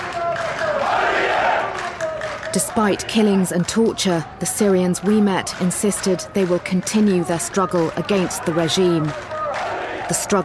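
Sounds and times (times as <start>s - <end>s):
protest crowd shouting slogans: 0.0s - 10.4s
speech: 2.5s - 9.4s, 10.1s - 10.4s.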